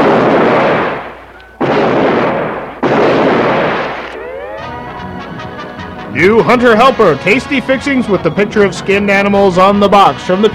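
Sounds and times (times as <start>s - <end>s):
gunshots from a gun being fired: 0.0s - 4.8s
speech: 6.2s - 10.5s.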